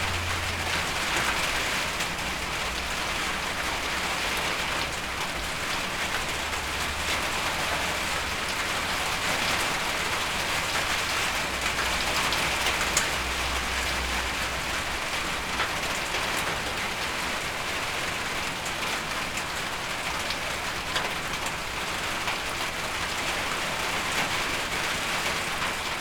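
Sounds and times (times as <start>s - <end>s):
rain on a carport: 0.0s - 25.9s.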